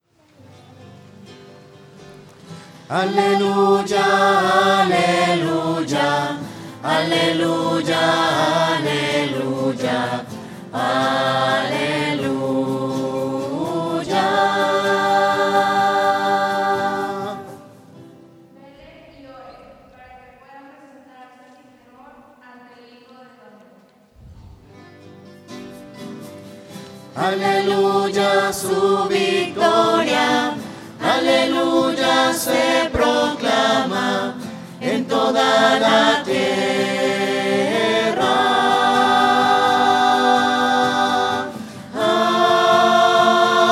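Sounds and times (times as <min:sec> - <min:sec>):
voices singing hallelujah: 0:02.8 - 0:18.0, 0:27.2 - 0:43.7.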